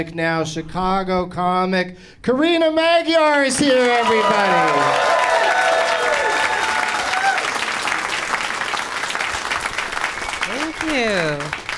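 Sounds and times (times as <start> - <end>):
speech: 0.0 - 5.3, 10.9 - 11.6
crowd whooping and cheering: 3.7 - 9.8
crowd applause: 3.7 - 11.7.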